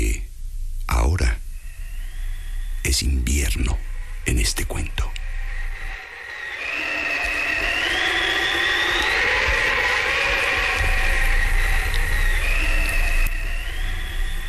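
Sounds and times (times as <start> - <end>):
snowstorm wind howling: 0.0 - 14.4
speech: 2.8 - 5.4.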